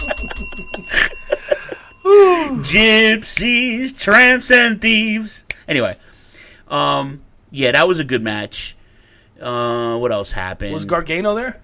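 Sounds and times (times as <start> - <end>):
bell ringing: 0.0 - 3.3
speech: 2.6 - 6.1, 6.7 - 8.8, 9.4 - 11.6.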